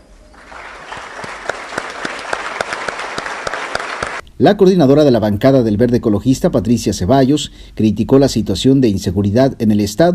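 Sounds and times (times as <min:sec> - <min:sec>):
audience applause: 0:00.0 - 0:04.2
speech: 0:04.4 - 0:10.1.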